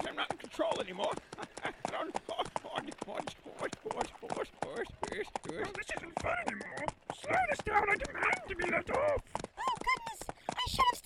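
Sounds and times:
horses' hooves clip-clopping pulling a wagon around Devil's Tower: 0.0s - 11.0s
speech: 0.2s - 9.4s
laughter: 0.6s - 9.1s.

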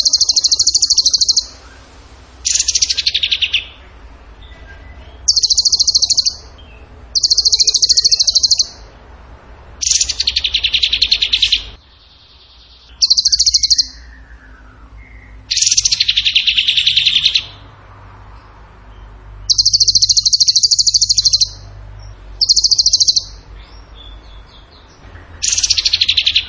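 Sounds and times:
bird trilling: 0.0s - 1.8s, 2.4s - 8.9s, 9.8s - 17.6s, 19.4s - 26.4s.

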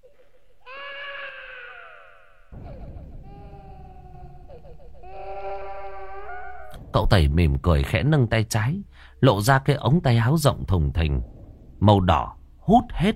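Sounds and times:
eerie children crying and wailing at night: 0.6s - 6.8s
speech: 7.0s - 13.1s.

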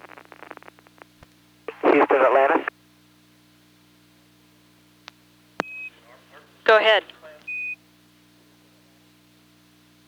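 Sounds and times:
low hum and hiss of an open radio channel: 0.0s - 10.0s
radio microphone key beep: 5.6s - 6.0s, 6.7s - 7.8s.

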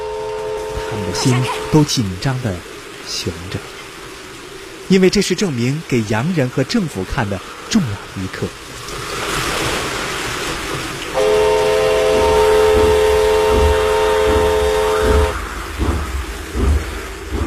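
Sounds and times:
train whistle of a train moving slowly onto a flooded track: 0.0s - 1.9s, 11.1s - 15.4s
constant rain: 0.0s - 17.4s
rushing water on a flooded track: 0.0s - 17.4s
speech: 0.9s - 3.8s, 4.9s - 9.0s
dull knocks: 12.1s - 17.4s.

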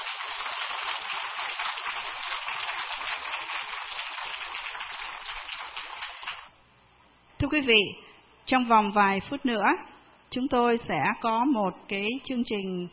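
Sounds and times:
audience applause: 0.0s - 6.5s
speech: 7.4s - 12.9s.

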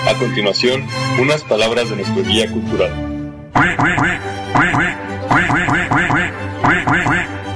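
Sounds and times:
speech: 0.1s - 7.4s
duck quacking: 3.6s - 7.4s.

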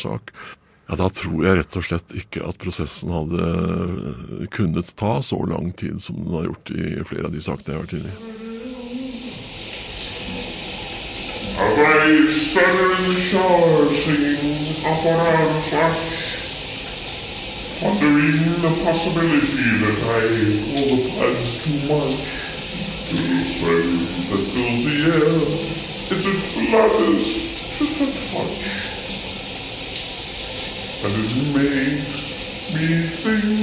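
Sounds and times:
speech: 0.0s - 8.6s, 11.6s - 16.2s, 17.8s - 22.4s, 23.1s - 28.8s, 31.0s - 33.6s
shower running water: 7.4s - 33.6s.

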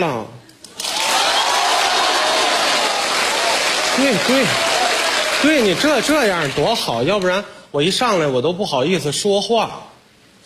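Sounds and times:
speech: 0.0s - 0.4s, 4.0s - 4.7s, 5.4s - 9.9s
audience applause and cheering: 0.8s - 6.8s.

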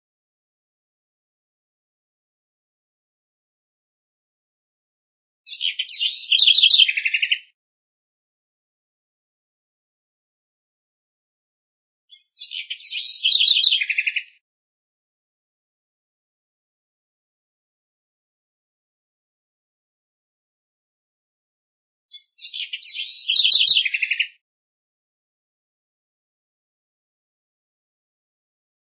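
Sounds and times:
house wren singing: 5.5s - 7.5s, 12.1s - 14.4s, 22.1s - 24.4s.

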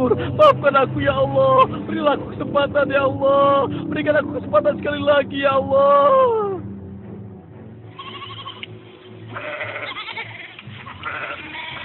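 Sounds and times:
speech: 0.0s - 6.4s
low rumble: 0.0s - 9.5s
goats bleating on a farm: 7.9s - 8.7s, 9.3s - 11.8s.

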